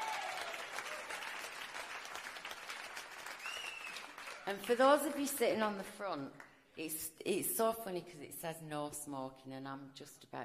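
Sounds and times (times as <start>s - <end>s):
audience applause: 0.0s - 5.1s
speech: 4.5s - 10.4s.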